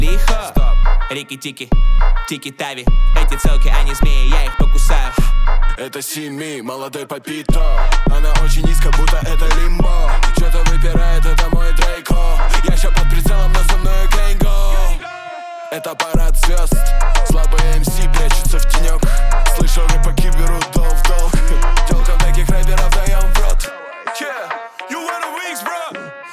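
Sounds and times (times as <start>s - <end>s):
bass tones at 26, 27 and 29 Hz: 0.0s - 1.1s, 1.8s - 2.3s, 2.9s - 5.8s, 7.5s - 15.0s, 16.2s - 23.7s.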